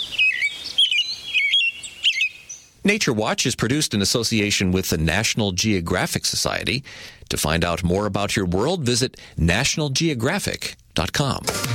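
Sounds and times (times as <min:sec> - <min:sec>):
American robin singing: 0:00.0 - 0:02.8
speech: 0:02.8 - 0:11.7.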